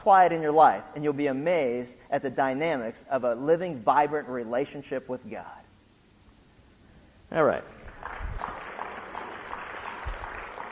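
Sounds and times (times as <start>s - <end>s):
speech: 0.0s - 5.6s, 7.3s - 8.2s
light audience applause: 7.8s - 10.7s.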